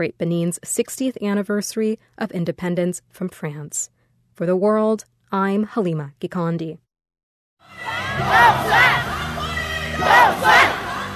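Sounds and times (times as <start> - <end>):
speech: 0.0 - 6.8, 7.6 - 9.2
campaign rally supporters cheering in Taipei: 7.7 - 11.1.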